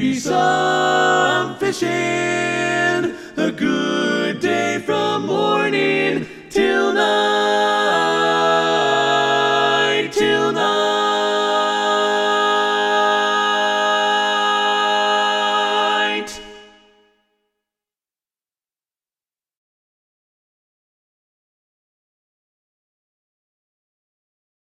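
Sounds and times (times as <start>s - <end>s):
tenor singing: 0.0s - 16.8s.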